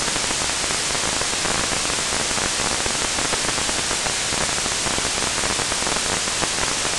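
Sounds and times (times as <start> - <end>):
fire: 0.0 - 6.9.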